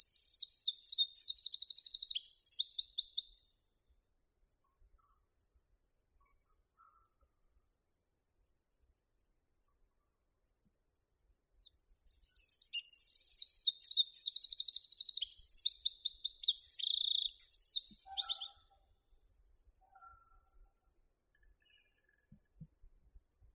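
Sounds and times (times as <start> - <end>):
wren Troglodytes troglodytes calling: 0.0 - 3.4, 11.6 - 18.6.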